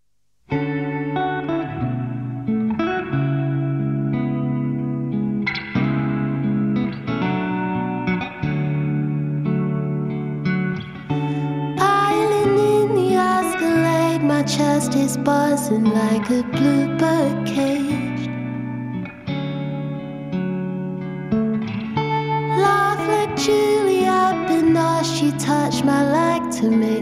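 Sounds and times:
live acoustic song performance: 0.6s - 27.0s.

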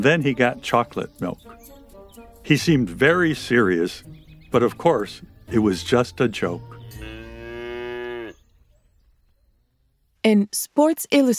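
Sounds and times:
speech: 0.0s - 7.2s, 10.2s - 11.3s
cow mooing: 6.9s - 8.4s.

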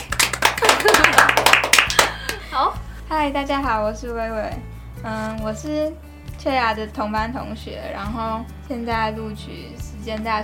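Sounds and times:
hand clapping: 0.0s - 2.5s
speech: 3.1s - 10.4s.

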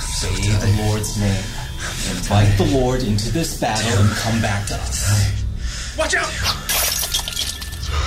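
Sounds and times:
speech: 0.2s - 5.4s, 6.0s - 6.6s
glass of holy water smashing against a wall: 6.7s - 7.9s
scattered glass shards rattling: 6.7s - 7.9s.

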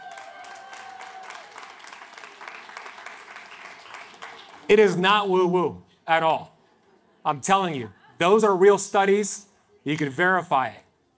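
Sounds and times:
audience applause: 0.0s - 5.5s
speech: 4.7s - 6.5s, 7.2s - 10.8s.

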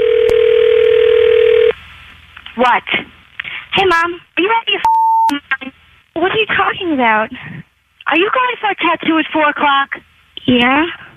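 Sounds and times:
phone line clicks: 0.0s - 1.7s
telephone dial tone over a phone line: 0.0s - 1.7s
speech: 2.6s - 3.2s, 3.8s - 11.0s.

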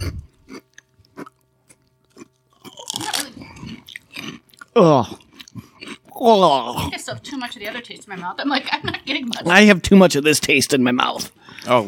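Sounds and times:
chewing crunchy puffy mushroom and tapioca starch chips: 0.0s - 6.0s
speech: 4.8s - 5.2s, 6.2s - 11.8s.

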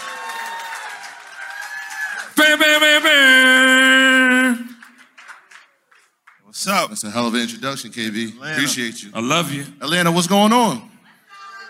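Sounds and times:
audience applauding and cheering: 0.0s - 6.4s
speech: 2.4s - 4.7s, 6.7s - 10.9s.

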